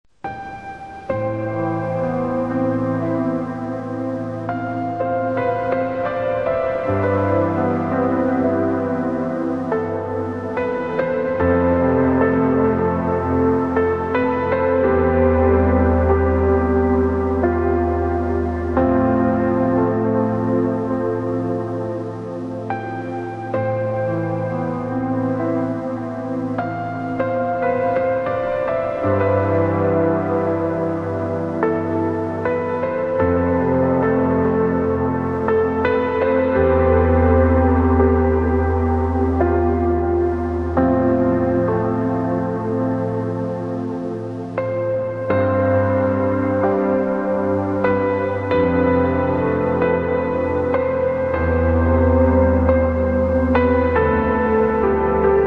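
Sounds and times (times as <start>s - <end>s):
sad piano: 0.1s - 55.4s.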